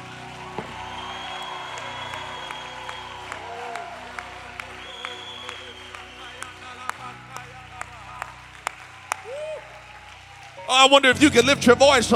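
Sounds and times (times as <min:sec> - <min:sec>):
cheers and whoops: 0:00.0 - 0:06.8, 0:08.0 - 0:10.7
crowd clapping: 0:00.0 - 0:11.5
speech: 0:10.7 - 0:12.1.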